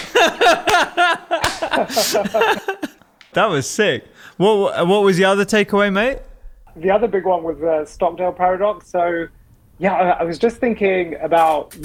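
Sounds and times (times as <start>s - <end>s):
rhythmic chuckling laughter: 0.0s - 3.0s
single sharp hand clap: 0.0s - 3.5s
speech: 1.8s - 11.8s.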